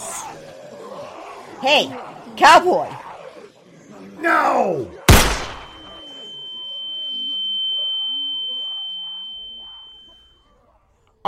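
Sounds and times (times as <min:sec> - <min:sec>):
faint murmuring: 0:00.0 - 0:11.2
speech: 0:01.6 - 0:03.0, 0:04.2 - 0:05.0
gunshot: 0:05.1 - 0:06.0
high thin ringing tone: 0:05.6 - 0:10.8.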